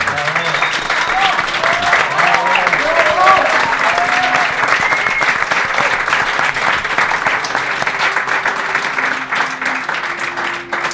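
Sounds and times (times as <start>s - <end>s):
cheering voices: 0.0s - 6.3s
audience applause: 0.0s - 10.9s.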